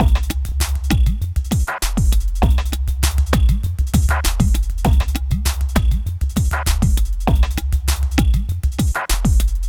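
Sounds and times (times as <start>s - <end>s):
ethnotronic processed percussion: 0.0s - 9.6s.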